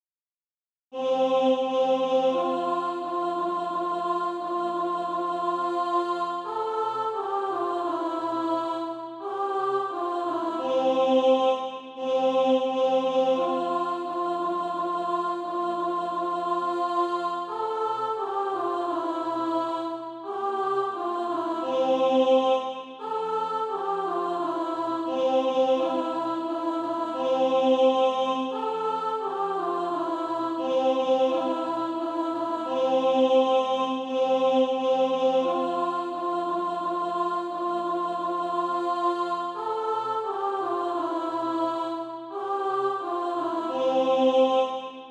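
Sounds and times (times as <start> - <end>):
alto voice singing: 0.9 - 45.0.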